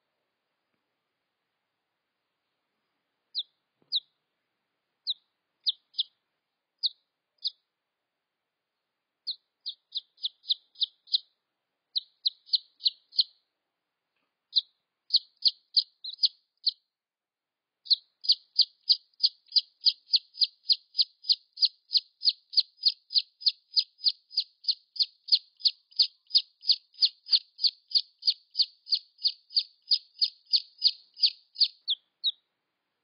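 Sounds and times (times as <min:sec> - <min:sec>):
red junglefowl chick peeps: 0:03.3 - 0:04.1, 0:05.0 - 0:06.2, 0:06.8 - 0:07.6, 0:09.2 - 0:13.4, 0:14.5 - 0:16.8, 0:17.8 - 0:32.5.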